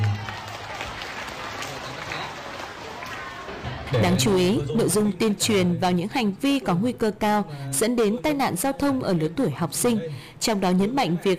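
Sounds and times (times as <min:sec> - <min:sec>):
group of children clapping: 0:00.0 - 0:03.9
low murmur of voices: 0:00.0 - 0:11.3
speech: 0:03.9 - 0:11.3.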